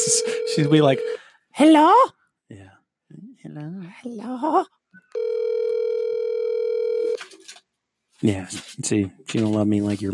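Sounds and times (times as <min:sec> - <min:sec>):
telephone ringing tone on an unanswered call: 0:00.0 - 0:01.2, 0:05.1 - 0:07.2
speech: 0:00.0 - 0:05.6, 0:08.2 - 0:10.1.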